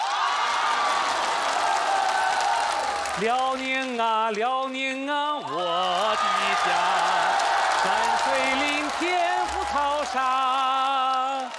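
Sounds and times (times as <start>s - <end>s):
crowd cheering: 0.0s - 4.4s, 5.4s - 11.5s
audience clapping: 0.0s - 11.5s
speech: 3.2s - 10.4s.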